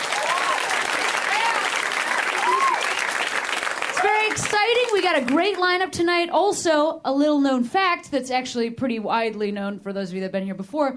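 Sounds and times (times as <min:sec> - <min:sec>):
audience clapping: 0:00.0 - 0:05.8
speech: 0:04.7 - 0:10.9.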